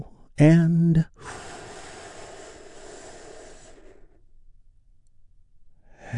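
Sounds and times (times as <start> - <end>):
speech: 0.4 - 1.4
big deep breath in during guided relaxation: 1.2 - 4.2.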